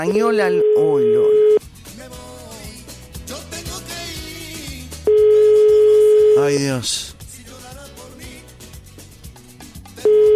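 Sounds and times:
speech: 0.0s - 2.2s, 6.4s - 7.2s
telephone ringing tone on a call to Spain: 0.1s - 1.6s, 5.1s - 6.6s, 10.0s - 10.3s.

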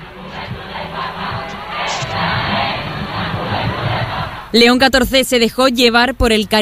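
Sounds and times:
huge crowd of young people cheering and chanting: 0.0s - 5.0s
speech: 4.5s - 6.5s.

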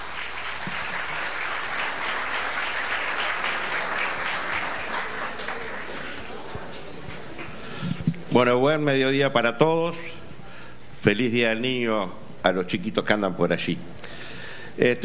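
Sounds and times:
audience applause: 0.0s - 7.8s
speech: 8.4s - 10.2s, 11.0s - 13.9s, 14.8s - 15.0s.

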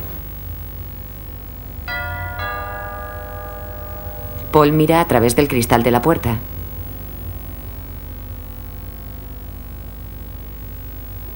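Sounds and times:
doorbell ringing: 1.9s - 6.7s
speech: 4.5s - 6.5s.

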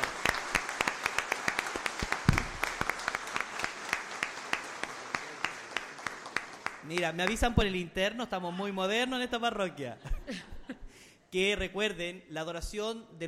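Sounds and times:
loud audience applause: 0.0s - 7.5s
speech: 6.9s - 10.5s, 11.3s - 13.2s
laughter: 9.9s - 10.9s.

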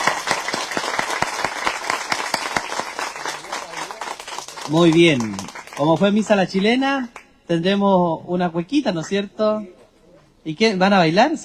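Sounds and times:
applause: 0.0s - 6.7s
speech: 4.7s - 9.8s, 10.4s - 11.4s.

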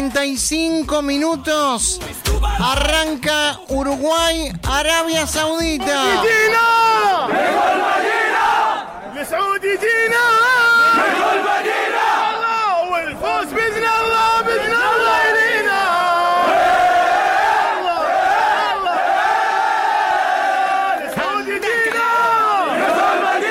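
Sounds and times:
speech: 0.1s - 8.2s
Saudi Arabia football fans chanting: 6.0s - 23.4s.

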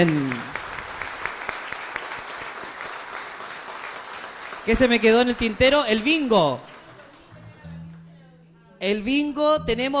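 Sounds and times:
speech: 0.0s - 0.5s, 4.7s - 6.7s, 8.8s - 9.9s
audience applause: 0.0s - 7.6s.

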